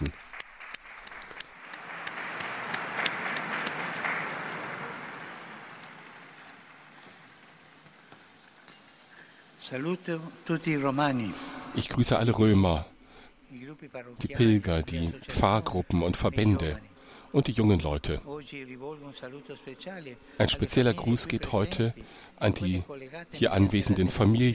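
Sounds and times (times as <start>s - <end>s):
applause: 0.0s - 8.1s
speech: 9.7s - 12.9s, 13.8s - 24.5s.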